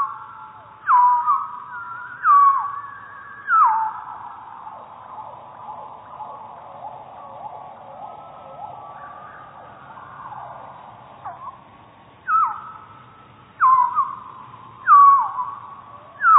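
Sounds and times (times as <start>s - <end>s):
chiffchaff slowed four times and lowered two octaves: 0.0s - 16.3s.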